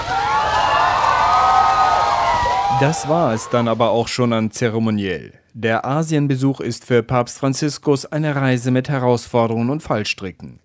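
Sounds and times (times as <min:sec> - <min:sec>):
children waving little flags cheering for Pope Francis: 0:00.0 - 0:04.0
speech: 0:02.8 - 0:10.6.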